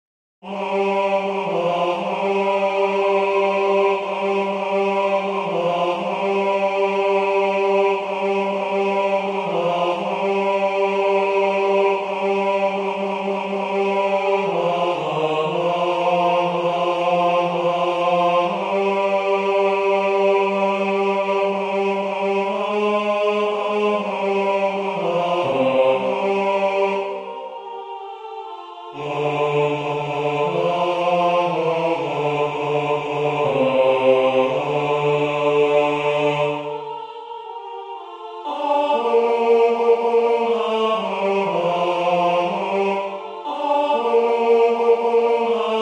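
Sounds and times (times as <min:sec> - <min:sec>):
bass choir singing: 0:00.4 - 0:45.8.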